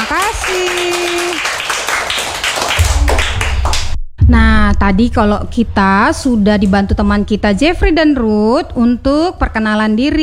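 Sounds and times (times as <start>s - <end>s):
crowd of children clapping hands: 0.0s - 4.0s
speech: 0.1s - 1.0s, 4.3s - 10.2s
low rumble: 2.8s - 9.6s.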